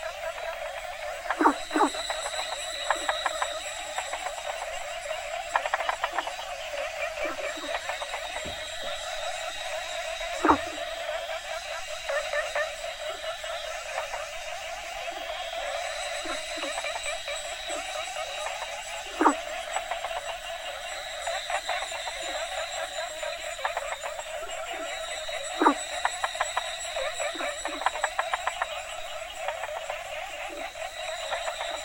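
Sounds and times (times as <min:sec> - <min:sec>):
frogs croaking: 0:00.0 - 0:31.8.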